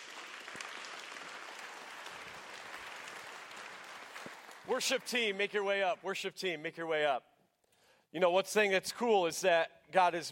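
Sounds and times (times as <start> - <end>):
audience applause: 0.0 - 5.3
speech: 4.7 - 7.3, 8.1 - 10.3.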